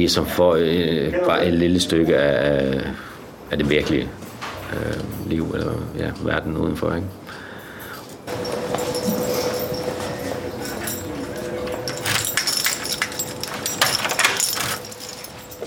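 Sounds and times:
speech: 0:00.0 - 0:07.4
keys jingling: 0:08.3 - 0:15.6
sharp metallic clatters: 0:08.3 - 0:15.6.

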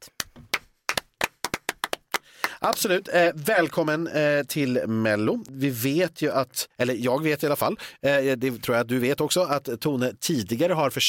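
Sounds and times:
sharp crisp hand claps from one or two people: 0:00.0 - 0:03.0
speech: 0:02.6 - 0:11.0.

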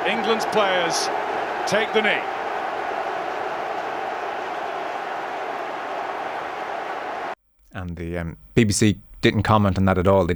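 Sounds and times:
stadium crowd booing: 0:00.0 - 0:07.4
speech: 0:00.1 - 0:02.4, 0:07.7 - 0:10.3.

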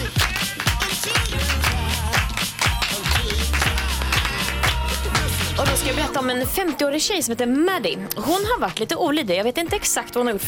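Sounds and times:
hand clapping: 0:00.0 - 0:05.8
speech: 0:06.1 - 0:10.4.

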